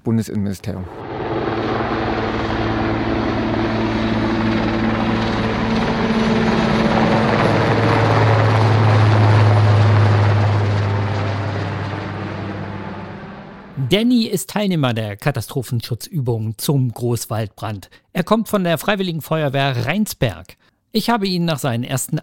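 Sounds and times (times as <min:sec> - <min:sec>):
speech: 0:00.1 - 0:01.0, 0:13.9 - 0:22.2
police helicopter flying overhead: 0:00.8 - 0:13.8.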